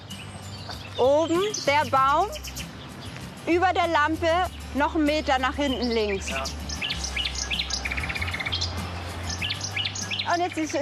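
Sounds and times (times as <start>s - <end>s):
Common Nightingale singing: 0.0s - 10.7s
speech: 1.0s - 2.6s, 3.4s - 6.6s, 10.3s - 10.7s.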